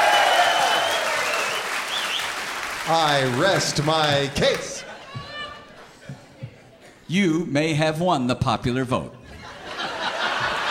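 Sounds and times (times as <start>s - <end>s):
whoops and whistles from an audience of bowlers: 0.0s - 2.4s
audience of bowlers clapping: 0.0s - 4.9s
speech: 2.9s - 4.9s, 7.1s - 9.2s.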